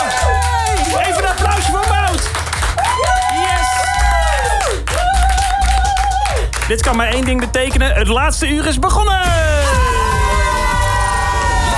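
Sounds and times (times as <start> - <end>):
cheering: 0.0 - 6.5, 9.3 - 11.7
applause: 0.0 - 7.8
speech: 6.7 - 9.9.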